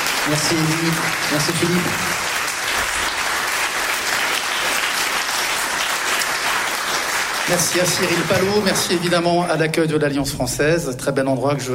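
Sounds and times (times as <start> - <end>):
audience applause: 0.0 - 9.4
speech: 0.2 - 2.2, 7.5 - 11.7.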